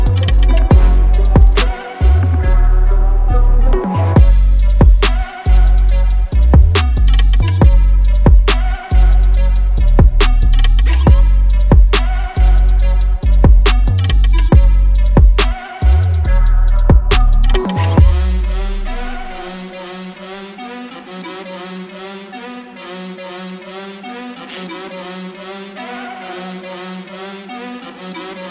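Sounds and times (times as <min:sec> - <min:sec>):
instrumental music: 0:00.0 - 0:19.7.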